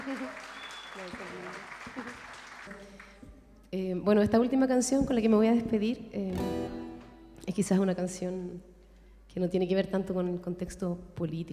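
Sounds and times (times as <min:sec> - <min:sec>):
audience applause: 0:00.0 - 0:03.2
speech: 0:00.1 - 0:03.1, 0:03.7 - 0:06.8, 0:07.5 - 0:08.7, 0:09.3 - 0:11.5.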